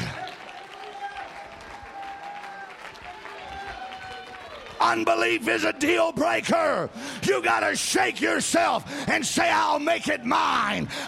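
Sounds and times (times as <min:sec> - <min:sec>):
audience clapping: 0:00.0 - 0:05.6
speech: 0:04.8 - 0:11.0.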